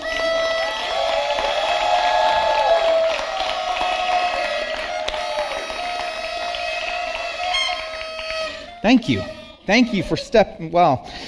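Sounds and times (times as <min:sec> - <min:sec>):
people clapping: 0:00.0 - 0:09.2
people cheering: 0:00.0 - 0:09.9
audience blowing horns: 0:03.7 - 0:10.6
speech: 0:08.8 - 0:11.2.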